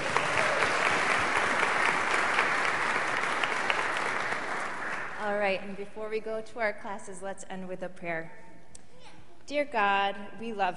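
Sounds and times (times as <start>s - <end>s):
round of applause: 0.0s - 5.4s
speech: 5.5s - 8.5s, 9.5s - 10.7s.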